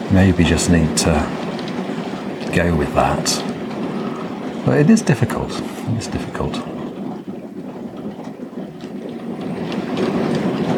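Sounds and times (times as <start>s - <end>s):
steady rain: 0.0s - 10.7s
speech: 0.1s - 1.4s, 2.5s - 3.5s, 4.6s - 6.8s.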